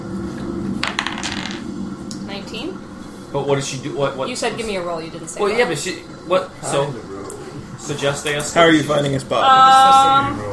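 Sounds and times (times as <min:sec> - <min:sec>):
steady low hum: 0:00.0 - 0:10.5
dice clattering across a hard tabletop: 0:00.8 - 0:01.6
speech: 0:03.3 - 0:07.1, 0:07.8 - 0:10.5.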